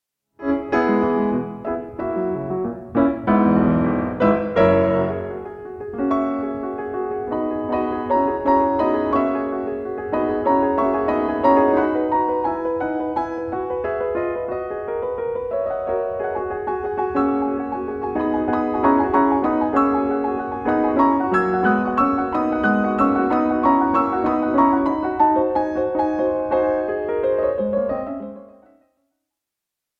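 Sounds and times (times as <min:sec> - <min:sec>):
piano sonata in E minor: 0:00.4 - 0:29.1.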